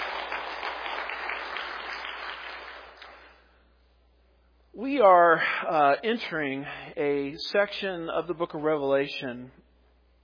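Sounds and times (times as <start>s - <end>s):
audience applause: 0.0s - 3.3s
speech: 4.8s - 9.6s.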